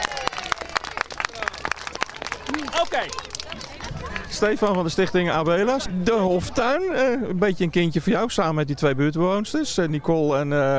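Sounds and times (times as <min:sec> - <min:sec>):
group applause at a live radio show event: 0:00.0 - 0:04.9
speech: 0:02.6 - 0:03.6, 0:04.3 - 0:10.7.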